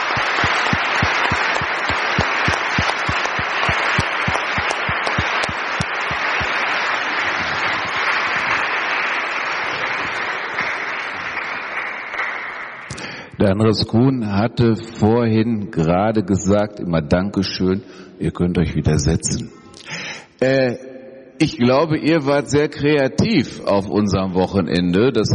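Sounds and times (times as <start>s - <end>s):
audience applause: 0.0s - 12.9s
speech: 13.5s - 19.6s, 20.4s - 20.8s, 21.4s - 25.3s.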